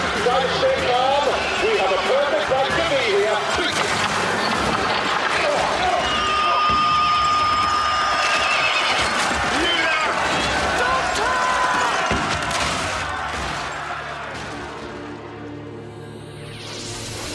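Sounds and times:
roar of crowd noise: 0.0 - 15.8
hooves pounding as mounted guards ride in a cavalry charge: 5.1 - 12.4
horses whinnying in a cavalry charge: 6.0 - 10.6.

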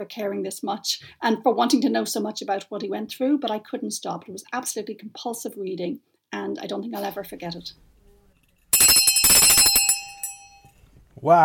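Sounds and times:
speech: 0.0 - 7.9, 11.2 - 11.4
timer alarm ringing: 8.7 - 10.7.

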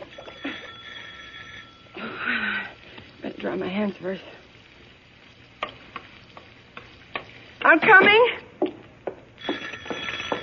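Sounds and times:
doorbell ringing: 0.0 - 2.1, 9.4 - 10.4
speech: 3.4 - 4.4, 7.7 - 8.4.

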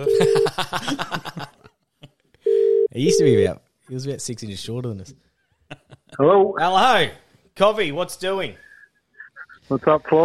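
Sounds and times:
telephone call ringing out: 0.0 - 0.6, 2.5 - 3.4
speech: 0.0 - 1.5, 3.0 - 5.3, 6.2 - 8.6, 9.7 - 10.2.

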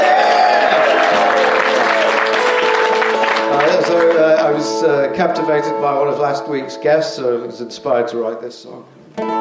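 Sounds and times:
audience applause at a comedy show welcoming a performer: 0.0 - 4.7
speech: 4.8 - 9.3.

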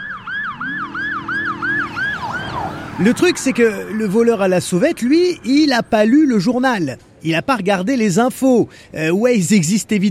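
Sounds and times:
police siren yelping: 0.0 - 5.6
speech: 3.0 - 10.0.

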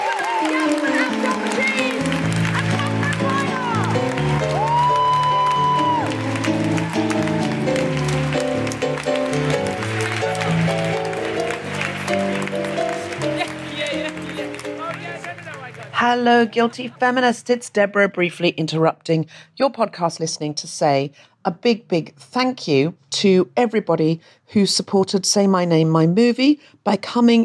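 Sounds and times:
audience applause and cheering: 0.0 - 17.0
speech: 0.4 - 1.2, 16.1 - 27.4.

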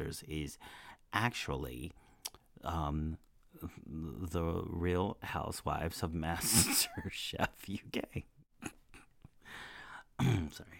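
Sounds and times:
speech: 0.0 - 8.8, 9.6 - 10.7
throat clearing: 10.2 - 10.6.

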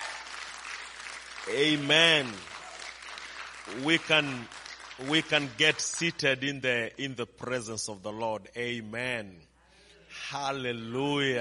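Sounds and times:
audience hand clapping: 0.0 - 6.4
speech: 1.5 - 2.5, 3.7 - 9.5, 10.2 - 11.3.

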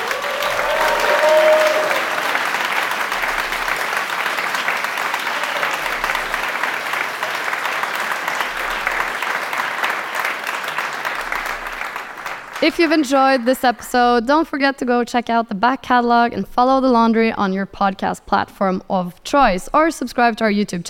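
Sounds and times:
audience applause in London: 0.0 - 13.8
speech: 12.6 - 20.8.

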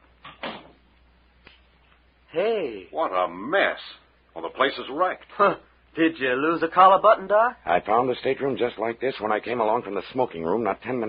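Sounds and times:
stateroom door swinging shut with a thud: 0.3 - 0.8
speech: 2.3 - 11.0.

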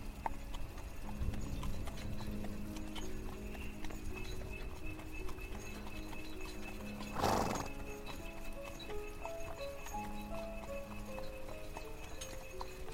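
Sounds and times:
horse hooves clip-clopping on a carriage ride through the woods: 0.0 - 12.9
horse-drawn carriage wheels and harness creaking and rattling: 0.0 - 12.9
horse snorting: 7.0 - 7.9.

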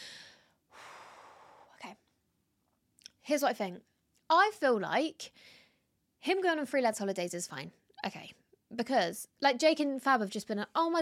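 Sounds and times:
group of people breathing deeply in a guided breathing exercise: 0.0 - 1.8
speech: 3.3 - 5.6, 6.2 - 11.0.

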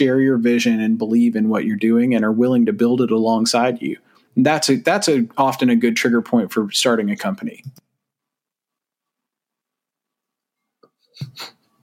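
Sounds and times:
speech: 0.0 - 7.8, 11.2 - 11.6
sneeze: 11.2 - 11.6.

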